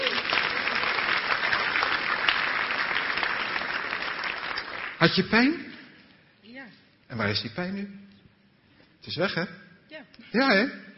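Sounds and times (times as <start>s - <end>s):
crowd clapping: 0.0s - 5.6s
speech: 5.0s - 5.7s, 7.1s - 8.1s, 9.0s - 9.6s, 10.2s - 10.8s.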